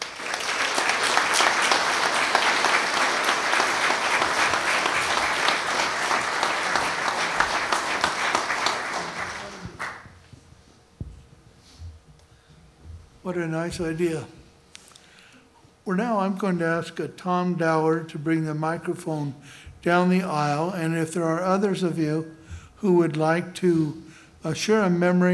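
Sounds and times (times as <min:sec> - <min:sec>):
crowd applause: 0:00.0 - 0:10.2
speech: 0:13.4 - 0:14.4, 0:15.9 - 0:25.3.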